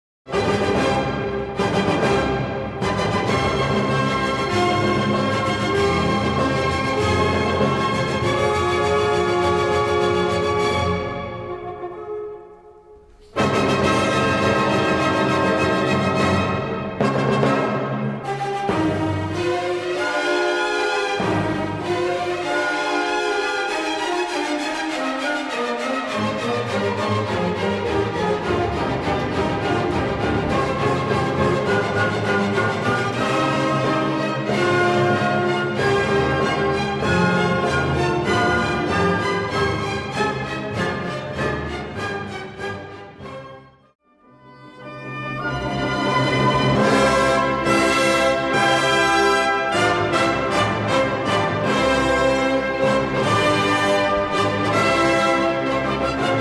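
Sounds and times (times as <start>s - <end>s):
music: 0.3s - 56.4s.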